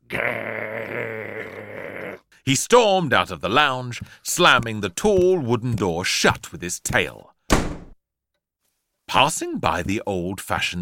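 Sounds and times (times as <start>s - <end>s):
person imitating a dog's growl: 0.0s - 2.3s
speech: 0.1s - 1.6s, 2.4s - 7.3s, 9.1s - 10.8s.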